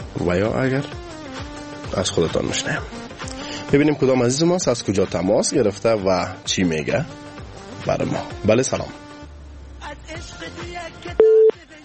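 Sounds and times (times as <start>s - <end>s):
speech: 0.2s - 1.2s, 1.9s - 3.0s, 3.7s - 7.2s, 7.8s - 9.0s
telephone tone as a caller connects to a radio call-in show: 11.2s - 11.6s.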